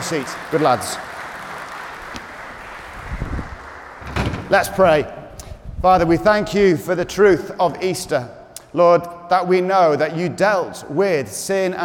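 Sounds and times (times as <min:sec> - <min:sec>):
church service audience applauding for a group of lads: 0:00.0 - 0:04.8
speech: 0:00.1 - 0:01.2, 0:04.5 - 0:05.2, 0:05.8 - 0:11.8.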